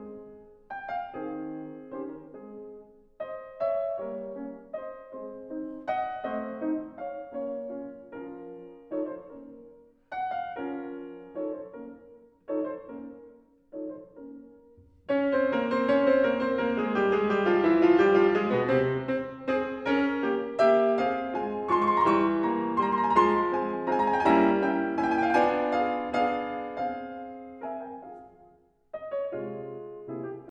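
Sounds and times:
piano sonata minuet in F minor: 0.0 - 30.4.

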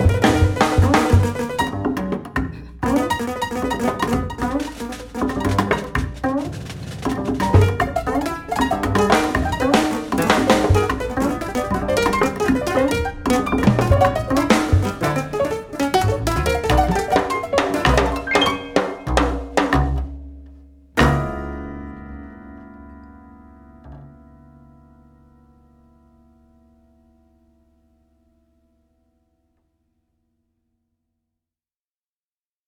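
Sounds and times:
piano trio: 0.0 - 23.0.

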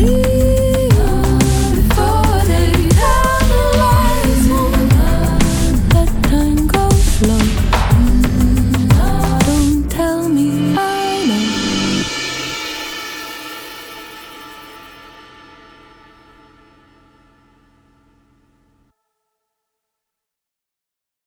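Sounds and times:
electronic music: 0.0 - 14.8.

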